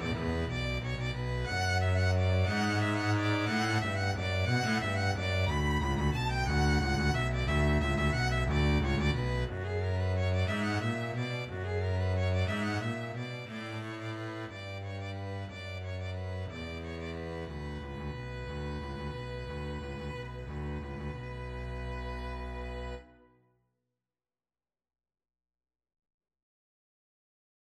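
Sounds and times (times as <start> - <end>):
double bass in a duet: 0.0 - 23.1
violin in a duet: 0.0 - 23.4.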